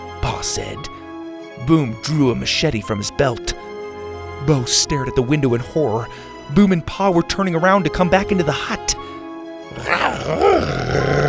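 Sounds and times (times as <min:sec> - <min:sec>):
speech: 0:00.4 - 0:01.0, 0:01.6 - 0:03.6, 0:04.4 - 0:09.1, 0:09.8 - 0:11.2
animal growling: 0:09.7 - 0:11.2.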